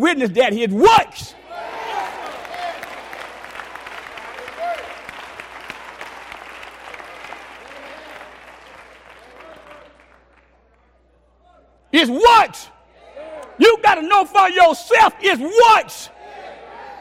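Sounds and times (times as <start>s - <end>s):
speech: 0.0s - 1.4s, 12.0s - 12.7s, 13.6s - 16.2s
audience hand claps: 1.9s - 10.9s.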